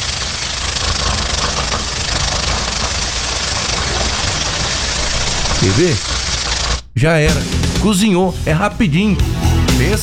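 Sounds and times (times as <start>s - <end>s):
pressure cooker hissing: 0.0s - 7.0s
speech: 5.6s - 6.2s, 7.0s - 10.0s.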